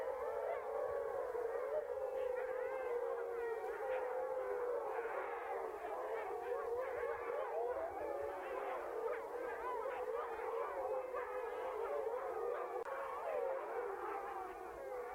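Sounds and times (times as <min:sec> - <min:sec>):
Apennine wolf pack howling together: 0:00.0 - 0:15.1.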